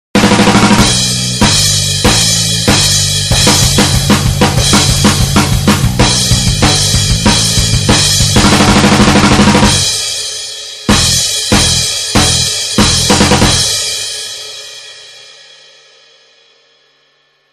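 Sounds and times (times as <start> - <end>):
metal drummer drumming: 0.2 - 14.6.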